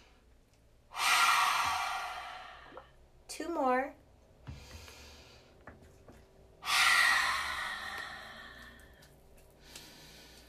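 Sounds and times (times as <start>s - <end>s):
deep exhale through an open mouth during a guided meditation: 0.9s - 3.0s, 6.6s - 9.0s.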